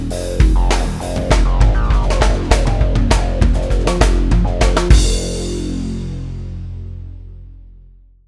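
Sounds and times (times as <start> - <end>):
drum backbeat: 0.0 - 5.9.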